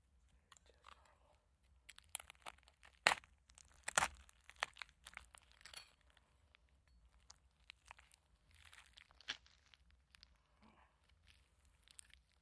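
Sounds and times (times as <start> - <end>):
meat being cut and ripped from bones: 1.9 - 5.6, 7.8 - 9.9.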